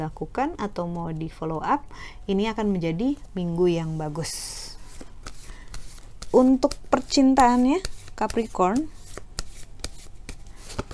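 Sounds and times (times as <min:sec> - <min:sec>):
speech: 0:00.0 - 0:04.8, 0:06.3 - 0:09.0
tarot cards being shuffled and handled: 0:04.9 - 0:10.9.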